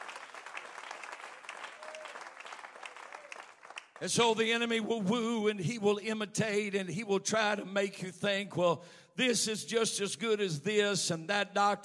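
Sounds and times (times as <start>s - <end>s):
audience clapping hands: 0.0s - 4.4s
speech: 4.0s - 11.8s.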